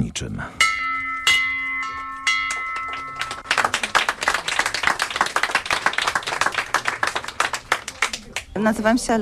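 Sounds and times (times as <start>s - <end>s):
speech: 0.2s - 0.8s, 8.6s - 9.2s
bell ringing in a hospital maternity ward: 0.6s - 4.2s
applause: 2.5s - 8.5s.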